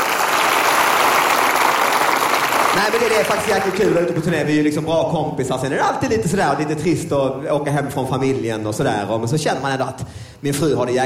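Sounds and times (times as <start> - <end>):
audience clapping at a comedy tour show: 0.0 - 4.4
speech: 2.8 - 11.0.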